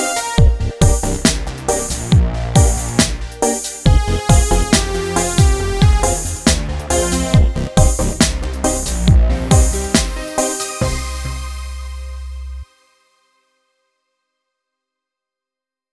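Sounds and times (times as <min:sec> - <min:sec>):
reggae music: 0:00.0 - 0:12.6.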